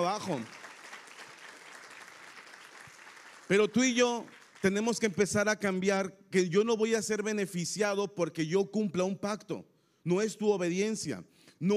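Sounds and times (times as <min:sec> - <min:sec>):
speech: 0:00.0 - 0:00.6, 0:03.5 - 0:11.7
audience applause: 0:00.0 - 0:04.9.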